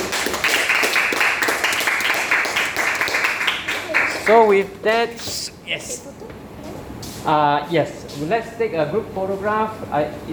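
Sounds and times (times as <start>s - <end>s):
audience applause: 0.0s - 4.7s
speech: 4.3s - 6.4s, 7.2s - 10.3s.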